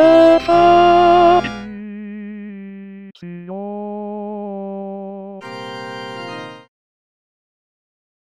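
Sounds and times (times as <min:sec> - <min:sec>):
tenor singing: 0:00.0 - 0:05.8.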